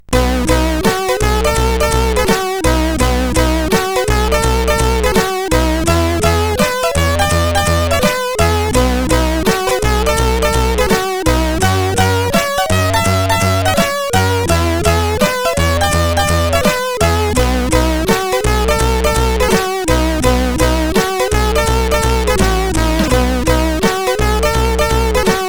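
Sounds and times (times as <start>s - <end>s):
chiptune test melody on CSG8580R5 sound chip: 0.0s - 25.4s.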